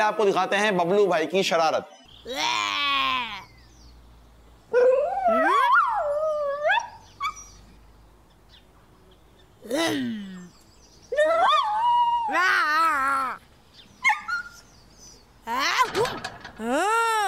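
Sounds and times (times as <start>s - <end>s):
speech: 0.0s - 3.5s, 9.7s - 10.3s, 12.3s - 13.4s, 15.5s - 17.2s
cartoon dog whimpering and howling: 4.8s - 7.4s, 11.2s - 13.4s.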